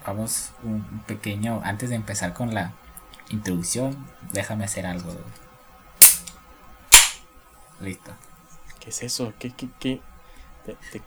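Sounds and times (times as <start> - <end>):
speech: 0.1 - 5.4, 7.8 - 11.0
soda can being cracked open: 6.0 - 7.2.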